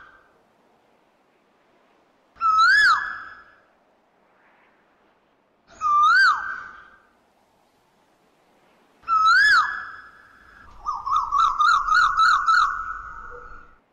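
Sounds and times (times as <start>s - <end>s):
Asian koel swooping and rising-falling whistled calls: 5.7s - 7.0s, 9.0s - 13.8s.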